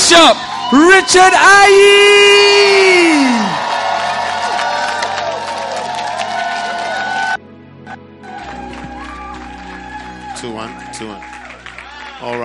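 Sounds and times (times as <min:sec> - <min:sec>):
large crowd shouting and whooping: 0:00.0 - 0:07.4, 0:08.2 - 0:12.4
speech: 0:00.1 - 0:03.6, 0:10.5 - 0:11.3, 0:12.2 - 0:12.4
large crowd clapping: 0:02.6 - 0:07.4, 0:08.2 - 0:12.4.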